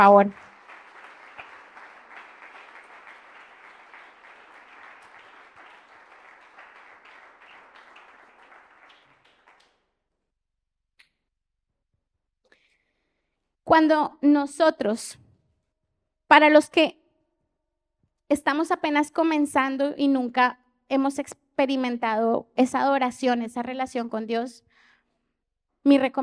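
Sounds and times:
speech: 0.0s - 0.5s, 13.7s - 15.2s, 16.3s - 17.0s, 18.3s - 24.7s, 25.8s - 26.2s
audience applause: 0.0s - 9.8s.

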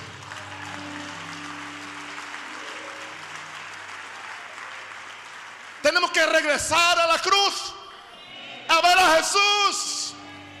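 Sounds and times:
audience applause: 0.0s - 6.5s
speech: 5.9s - 7.8s, 8.8s - 9.9s.

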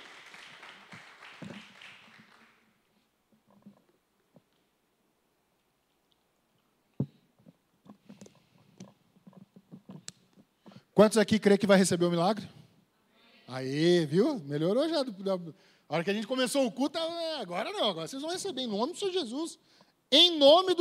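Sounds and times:
crowd applause: 0.0s - 2.7s
speech: 11.0s - 12.6s, 13.6s - 20.7s.

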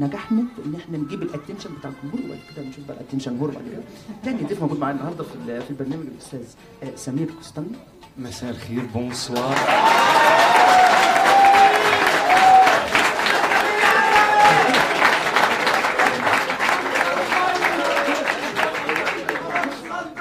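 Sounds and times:
speech: 0.0s - 10.9s
audience applause welcoming a guest: 9.0s - 20.1s.

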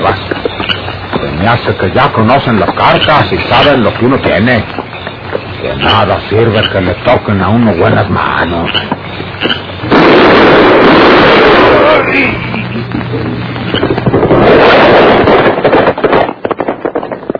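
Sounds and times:
speech: 1.4s - 4.8s, 5.6s - 12.5s
gunshots fired from dark woods: 9.8s - 17.3s.

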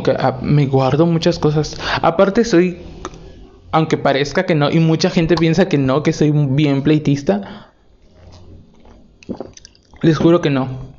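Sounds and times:
speech: 0.0s - 2.9s, 3.7s - 7.6s, 9.3s - 10.9s
person drinking water: 8.0s - 10.0s.

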